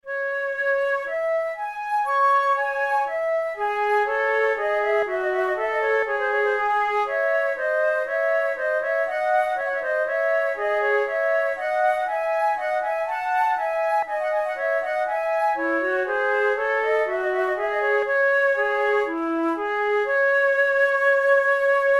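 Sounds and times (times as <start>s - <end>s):
flute prelude: 0.0s - 21.9s.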